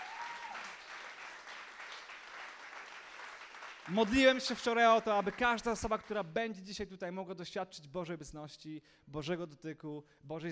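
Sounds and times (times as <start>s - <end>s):
audience applause: 0.0s - 5.5s
speech: 3.9s - 10.4s.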